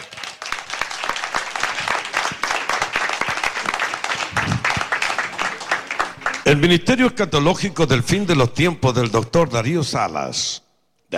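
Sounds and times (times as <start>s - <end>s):
audience applause: 0.0s - 6.8s
speech: 6.5s - 11.1s.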